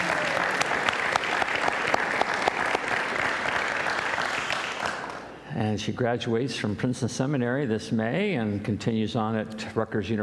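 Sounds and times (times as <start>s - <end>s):
crowd applauding: 0.0s - 5.3s
speech: 5.7s - 10.2s.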